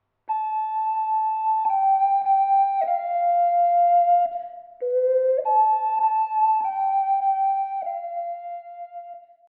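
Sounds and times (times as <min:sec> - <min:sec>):
ocarina melody: 0:00.3 - 0:09.4.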